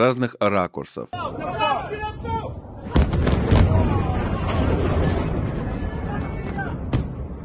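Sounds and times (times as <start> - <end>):
speech: 0.0 - 2.6
missile strikes exploding: 2.8 - 7.4.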